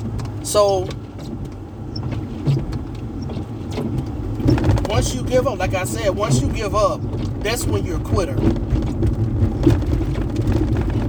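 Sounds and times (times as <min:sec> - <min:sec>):
car driving over a bumpy road: 0:00.0 - 0:11.0
speech: 0:00.4 - 0:01.0, 0:04.9 - 0:08.8
irregular thumps and rattles of car body: 0:01.1 - 0:05.4, 0:08.2 - 0:11.0.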